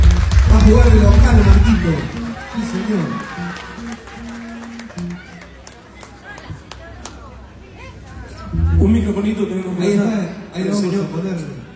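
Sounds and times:
scattered audience applause: 0.0s - 7.4s
speech: 0.7s - 3.5s, 8.8s - 11.6s
crowd murmur: 1.5s - 9.4s
low steady hum: 8.5s - 9.4s.

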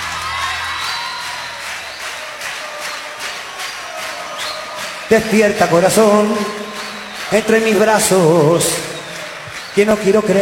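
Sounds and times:
rhythmic hand clapping: 0.0s - 10.3s
speech: 5.1s - 6.6s, 7.3s - 8.9s, 9.8s - 10.3s.

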